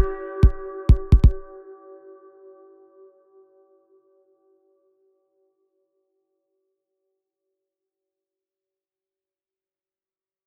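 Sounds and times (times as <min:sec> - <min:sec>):
trap beat: 0:00.0 - 0:01.5.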